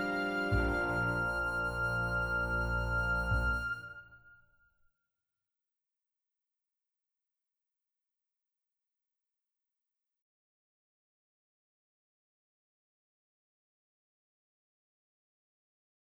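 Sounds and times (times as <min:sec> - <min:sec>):
accompaniment backing track music: 0:00.0 - 0:04.1.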